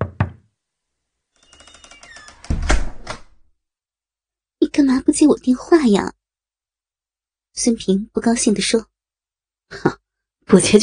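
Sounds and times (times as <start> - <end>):
knocking on a door: 0.0 - 0.5
speech: 4.8 - 6.2, 7.6 - 8.9, 9.7 - 10.8.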